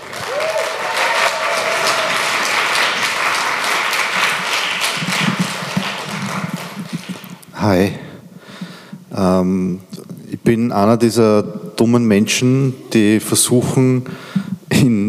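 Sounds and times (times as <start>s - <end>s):
audience applause: 0.0s - 7.6s
speech: 7.6s - 8.0s, 9.2s - 15.0s.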